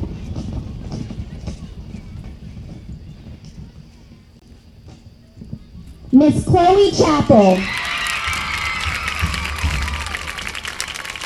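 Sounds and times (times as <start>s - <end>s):
speech: 6.2s - 7.8s
crowd cheering: 6.9s - 11.2s
applause: 7.7s - 11.2s.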